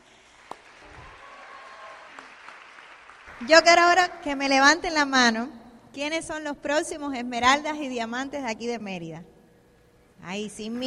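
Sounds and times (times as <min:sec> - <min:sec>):
audience applause: 0:00.0 - 0:03.5
speech: 0:03.4 - 0:09.3, 0:10.2 - 0:10.8.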